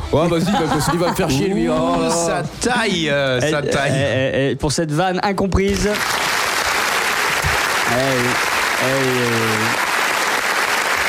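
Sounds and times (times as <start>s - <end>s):
laughter: 0.1s - 2.4s
speech: 0.1s - 6.2s, 7.9s - 9.8s
live audience applauding wildly: 5.8s - 11.0s.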